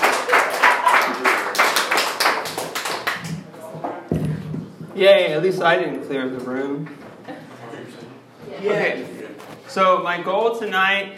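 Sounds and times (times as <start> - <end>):
audience clapping: 0.0 - 3.5
speech: 5.0 - 7.0, 8.6 - 9.1, 9.8 - 11.1.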